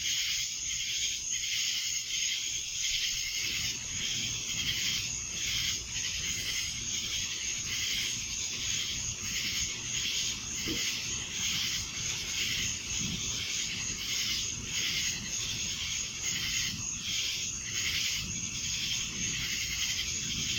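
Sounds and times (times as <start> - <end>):
cicadas in a dense droning chorus in Annapolis in July: 0.0 - 20.5.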